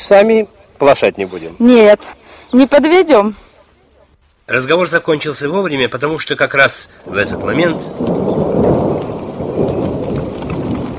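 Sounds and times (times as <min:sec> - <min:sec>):
speech: 0:00.1 - 0:03.4, 0:04.5 - 0:08.7
heavy rain during a rural downpour: 0:06.6 - 0:10.9
rolling thunder: 0:07.0 - 0:10.9.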